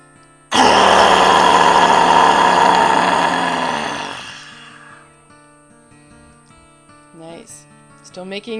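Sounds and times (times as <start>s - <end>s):
person roaring like a lion: 0.5s - 5.0s
speech: 8.2s - 8.5s.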